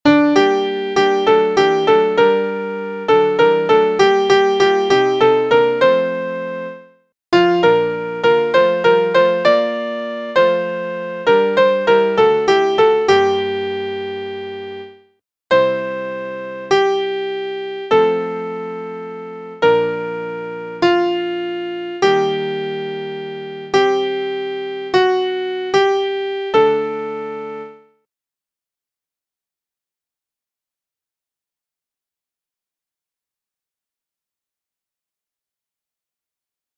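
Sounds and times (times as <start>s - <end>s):
piano: 0.1s - 28.0s.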